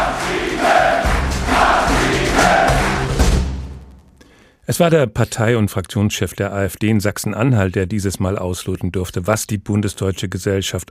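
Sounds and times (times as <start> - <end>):
hall crowd chanting: 0.0 - 3.2
hall crowd cheering: 0.0 - 3.6
speech: 4.7 - 10.9.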